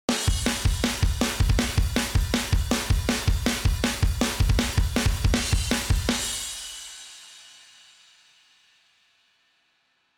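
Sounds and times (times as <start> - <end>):
drum: 0.1 - 7.0.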